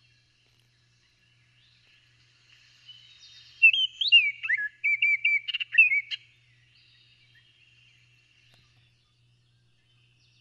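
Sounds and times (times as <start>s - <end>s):
Baltimore Oriole giving clear whistled notes: 3.6s - 6.2s.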